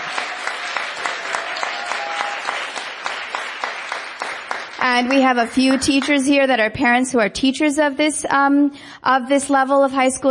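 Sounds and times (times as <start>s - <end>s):
audience applause: 0.0s - 6.3s
speech: 4.8s - 10.2s.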